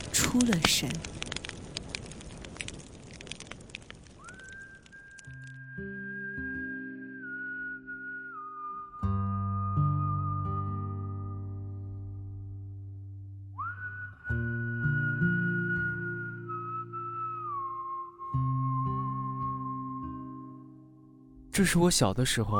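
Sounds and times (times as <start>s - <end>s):
crackling fire: 0.0s - 20.7s
speech: 0.4s - 1.1s, 21.6s - 22.5s
person whistling a slow melody: 4.2s - 11.7s, 13.6s - 20.4s.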